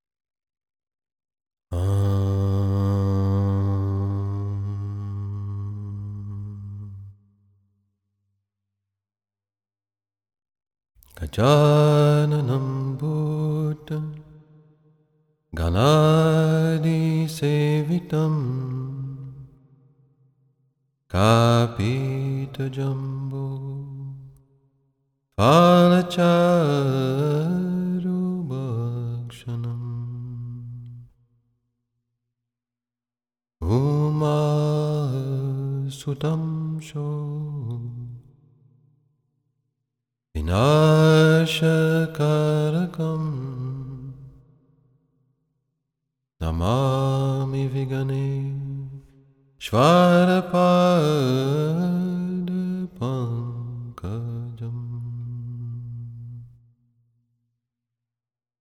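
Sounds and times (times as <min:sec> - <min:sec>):
mantra sung as bhajan: 0:01.7 - 0:07.2, 0:11.2 - 0:14.3, 0:15.6 - 0:19.5, 0:21.1 - 0:24.3, 0:25.4 - 0:31.1, 0:33.6 - 0:38.2, 0:40.4 - 0:44.4, 0:46.4 - 0:56.5.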